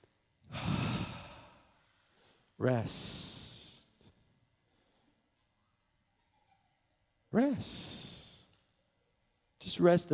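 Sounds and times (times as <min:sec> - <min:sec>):
people taking a deep breath in together on a spoken cue: 0:00.5 - 0:02.6, 0:04.6 - 0:05.5
speech: 0:02.6 - 0:03.2, 0:07.4 - 0:07.9, 0:09.8 - 0:10.1.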